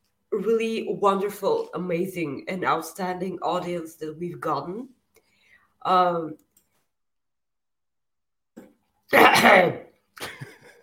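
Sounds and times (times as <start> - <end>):
speech: 0.4 - 5.0, 5.8 - 6.4, 9.1 - 10.4
person coughing: 9.2 - 9.9.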